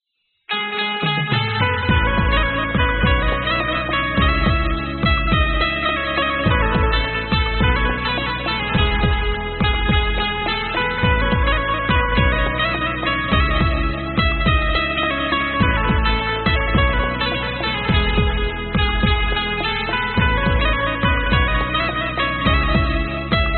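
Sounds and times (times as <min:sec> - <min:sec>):
instrumental music: 0:00.5 - 0:23.5.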